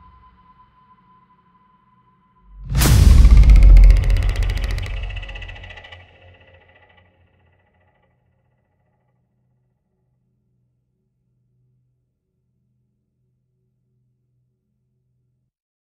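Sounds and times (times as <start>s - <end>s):
epic creepy hybrid horror creature sound design: 2.6s - 5.9s.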